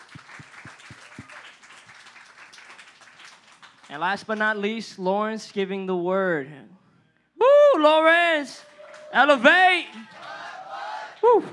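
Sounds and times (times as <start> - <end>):
audience clapping: 0.0 - 4.6, 8.3 - 11.5
speech: 3.9 - 6.8, 7.8 - 10.2, 11.3 - 11.5.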